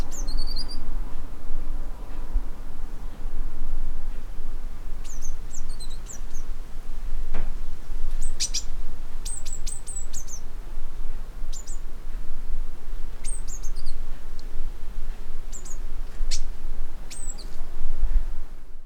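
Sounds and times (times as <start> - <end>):
Eurasian blue tit calling: 0.0 - 0.9, 5.0 - 6.6, 8.1 - 10.6, 11.4 - 11.9, 13.0 - 14.5, 15.4 - 17.6
low background hum: 0.0 - 18.8.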